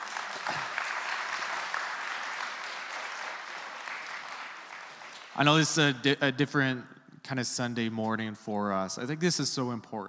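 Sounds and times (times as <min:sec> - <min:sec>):
audience clapping: 0:00.0 - 0:06.0
speech: 0:05.4 - 0:10.0.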